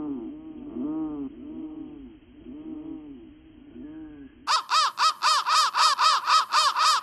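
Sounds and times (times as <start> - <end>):
crow calling in raspy high-pitched bursts: 4.5 - 7.0.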